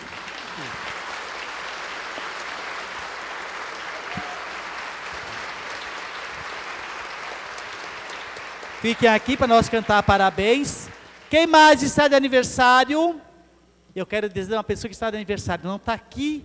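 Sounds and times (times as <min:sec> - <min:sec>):
audience applause: 0:00.0 - 0:11.3
speech: 0:00.6 - 0:00.9, 0:08.8 - 0:13.2, 0:14.0 - 0:16.4.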